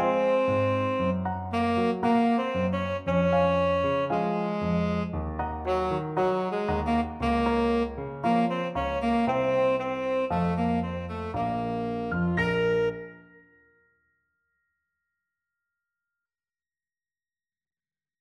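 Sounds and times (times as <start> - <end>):
tenor saxophone: 0.0 - 13.4.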